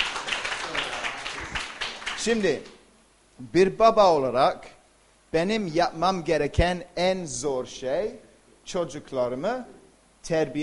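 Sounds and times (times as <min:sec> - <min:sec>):
audience applause: 0:00.0 - 0:02.6
speech: 0:02.2 - 0:02.8, 0:03.4 - 0:04.7, 0:05.3 - 0:10.6.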